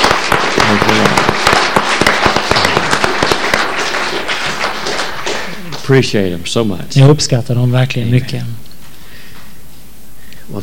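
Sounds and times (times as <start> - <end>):
audience applause: 0.0 - 6.3
speech: 5.9 - 8.6.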